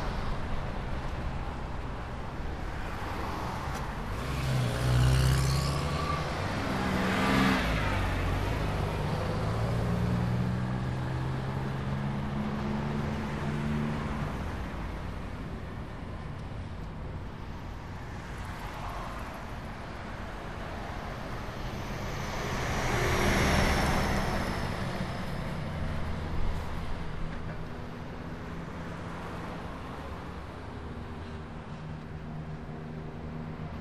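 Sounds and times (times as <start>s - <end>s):
road noise: 0.0s - 33.7s.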